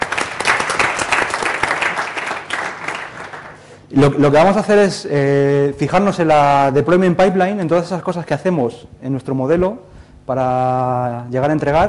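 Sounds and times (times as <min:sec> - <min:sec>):
audience applause: 0:00.0 - 0:03.7
speech: 0:04.0 - 0:11.8.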